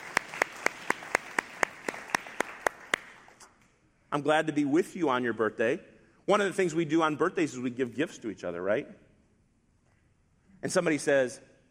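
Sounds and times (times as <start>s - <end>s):
group clapping for a birthday: 0.0s - 3.5s
speech: 4.1s - 9.0s, 10.6s - 11.5s.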